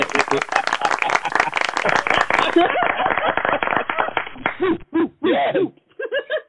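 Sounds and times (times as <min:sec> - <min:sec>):
crowd clapping and cheering: 0:00.0 - 0:04.8
laughter: 0:00.0 - 0:06.4.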